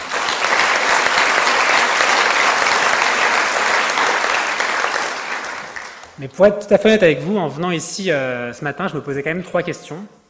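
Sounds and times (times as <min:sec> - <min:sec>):
audience applause for students: 0:00.0 - 0:06.2
speech: 0:06.2 - 0:10.2.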